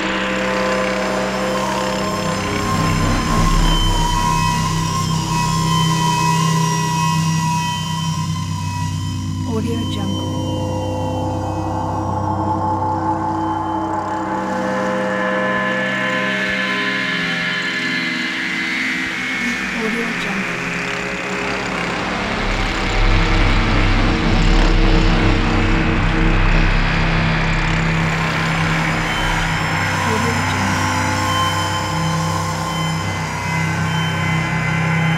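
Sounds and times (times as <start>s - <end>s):
drone atmosphere: 0.0s - 35.1s.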